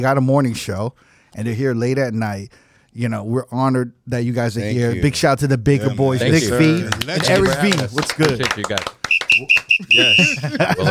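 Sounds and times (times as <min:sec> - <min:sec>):
speech: 0:00.0 - 0:10.9
whistle: 0:09.0 - 0:10.4
laughter: 0:09.4 - 0:10.9.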